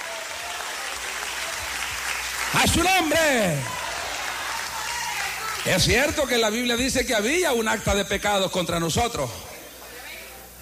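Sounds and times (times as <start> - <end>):
audience applause: 0.0 - 6.1
speech: 2.5 - 3.8, 5.6 - 9.4.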